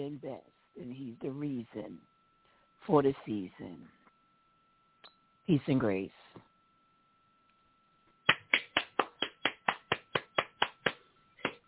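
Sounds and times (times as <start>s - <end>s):
speech: 0.0s - 2.2s, 2.8s - 4.0s, 5.5s - 6.5s
single person clapping: 8.3s - 11.6s.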